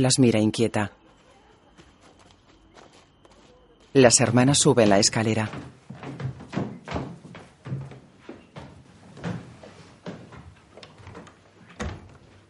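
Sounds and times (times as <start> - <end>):
speech: 0.0 - 1.0, 3.9 - 5.9
door opening: 4.3 - 12.4.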